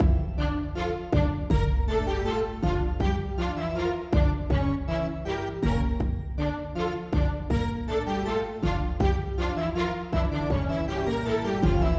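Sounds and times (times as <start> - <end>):
baroque cinematic battle music loop: 0.0 - 11.9.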